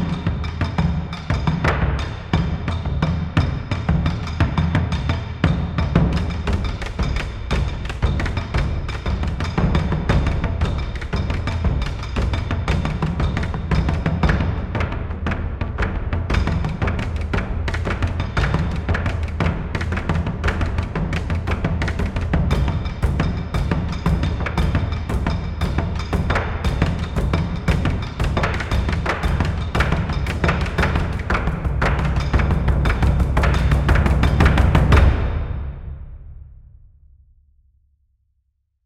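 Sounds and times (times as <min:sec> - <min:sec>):
serious driving Japanese drum percussion: 0:00.0 - 0:36.7.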